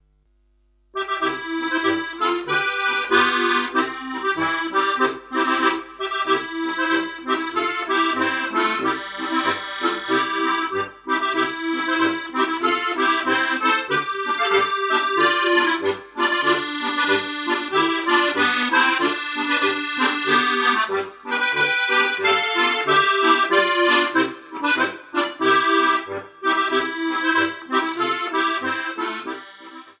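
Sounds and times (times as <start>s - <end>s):
polka in first and second voice: 1.0s - 29.9s.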